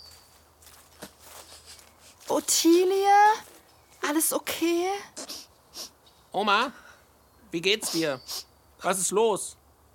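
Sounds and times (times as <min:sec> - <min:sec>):
soft footsteps of people walking over to a crying girl: 0:00.0 - 0:02.7
speech: 0:02.3 - 0:05.3, 0:06.3 - 0:06.8, 0:07.5 - 0:09.6.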